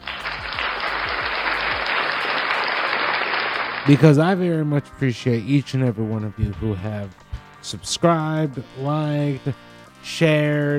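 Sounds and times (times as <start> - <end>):
round of applause: 0.0 - 4.2
speech: 3.9 - 10.7.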